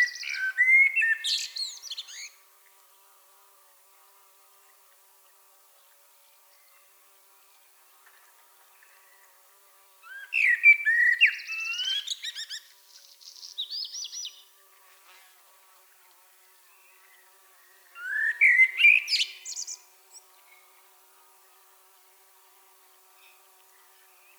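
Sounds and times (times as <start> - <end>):
common blackbird Turdus merula singing: 0.0 - 2.3, 10.1 - 12.6, 13.2 - 14.4, 18.0 - 19.9.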